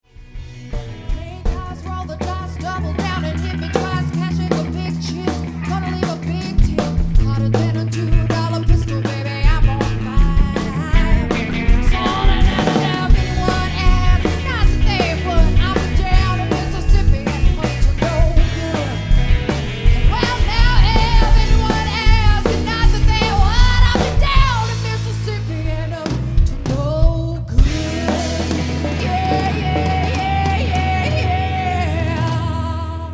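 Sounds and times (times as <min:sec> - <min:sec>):
live cover band: 0:00.0 - 0:33.1.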